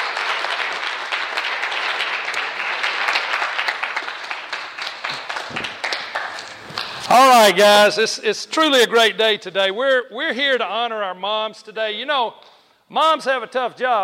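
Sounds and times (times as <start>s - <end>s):
crowd applauding with many hands clapping: 0.0s - 7.7s
speech: 7.1s - 14.0s.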